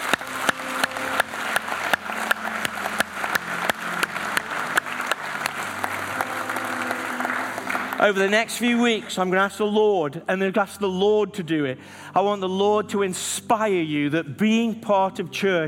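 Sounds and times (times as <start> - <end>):
audience applause: 0.0 - 9.0
speech: 8.0 - 15.6.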